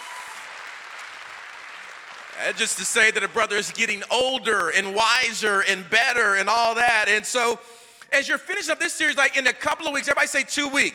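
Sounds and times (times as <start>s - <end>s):
audience applause: 0.0s - 3.7s
speech: 2.4s - 10.9s.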